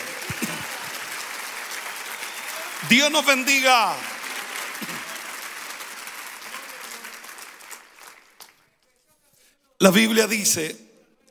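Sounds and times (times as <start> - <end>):
loud audience applause: 0.0 - 8.7
speech: 2.8 - 4.1, 9.8 - 10.8.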